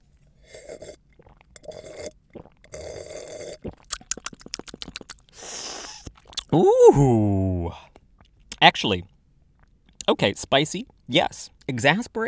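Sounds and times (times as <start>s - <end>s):
sipping wine: 0.4s - 8.0s
speech: 6.5s - 7.4s, 8.6s - 9.1s, 10.1s - 12.2s.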